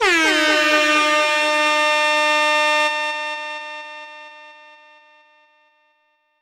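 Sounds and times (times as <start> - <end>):
horn: 0.0 - 4.5.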